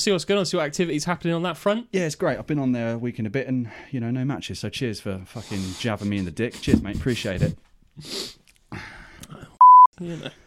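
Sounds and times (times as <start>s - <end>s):
speech: 0.0s - 8.9s, 10.0s - 10.4s
censor bleep over a swear word: 9.6s - 9.9s.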